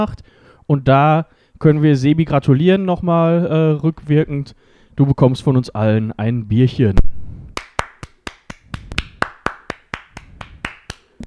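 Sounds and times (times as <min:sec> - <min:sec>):
speech: 0:00.0 - 0:07.1
hand claps: 0:07.6 - 0:11.2.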